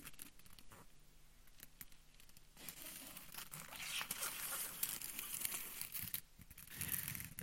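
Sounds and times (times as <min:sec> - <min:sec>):
gift wrapping paper crinkling and tearing as a child unwraps a present: 0:02.6 - 0:07.4.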